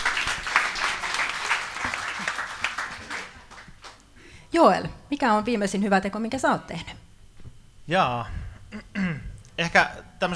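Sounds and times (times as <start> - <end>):
audience applause: 0.0 - 4.0
speech: 4.5 - 7.0, 7.9 - 9.1, 9.7 - 10.3.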